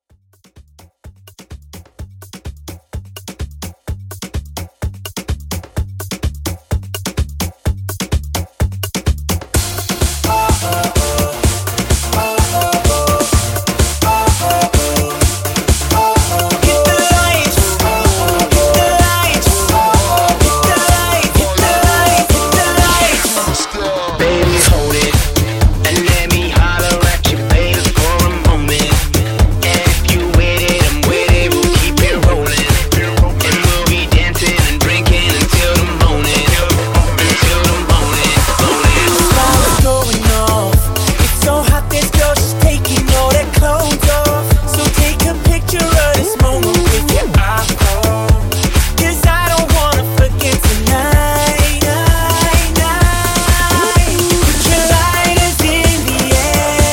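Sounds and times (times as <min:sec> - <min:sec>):
R&B club house music: 0:00.4 - 0:56.9.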